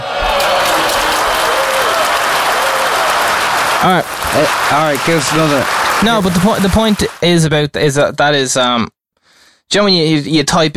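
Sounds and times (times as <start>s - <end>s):
applause sound effect: 0.0s - 7.3s
speech: 3.8s - 9.0s, 9.7s - 10.7s.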